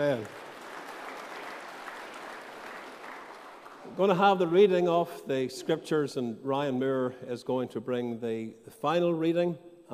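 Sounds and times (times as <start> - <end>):
speech: 0.0 - 0.4, 3.9 - 9.9
audience applause: 0.0 - 4.2.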